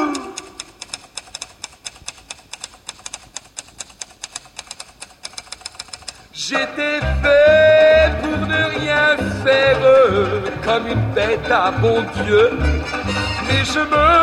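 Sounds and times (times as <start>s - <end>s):
typewriter keys clacking: 0.1s - 6.3s
speech: 6.5s - 7.6s, 8.5s - 12.8s, 13.6s - 14.2s.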